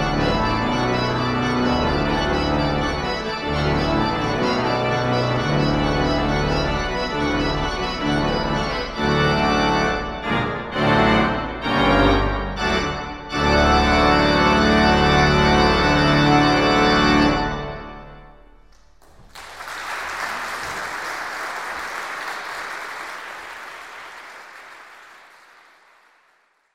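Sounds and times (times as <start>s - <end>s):
organ: 0.0s - 19.2s.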